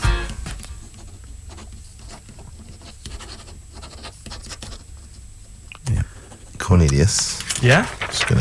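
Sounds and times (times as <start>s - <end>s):
pen writing a note on paper: 0.8s - 5.2s
speech: 6.7s - 8.3s.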